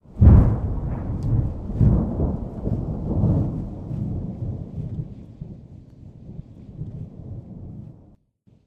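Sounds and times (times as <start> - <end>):
thunder: 0.0 - 8.2.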